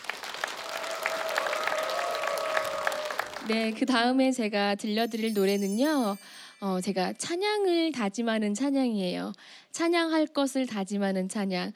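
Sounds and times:
audience applause: 0:00.0 - 0:03.8
speech: 0:03.5 - 0:11.7.

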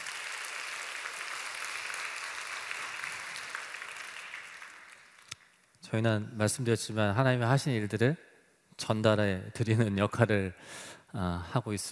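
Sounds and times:
audience applause: 0:00.0 - 0:05.4
speech: 0:05.9 - 0:11.9.

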